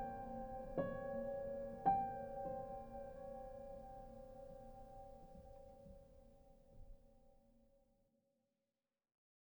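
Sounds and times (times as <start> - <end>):
noir piano underscore: 0.0 - 6.9.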